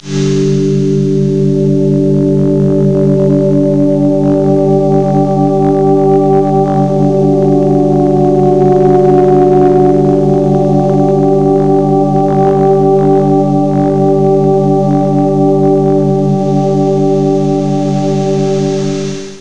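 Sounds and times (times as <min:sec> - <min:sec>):
new age music: 0:00.0 - 0:19.4.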